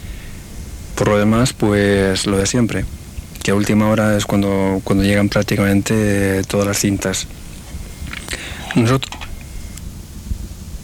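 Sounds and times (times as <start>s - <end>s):
speech: 1.0s - 7.4s, 8.7s - 9.2s
swallowing sips of water: 7.3s - 8.8s.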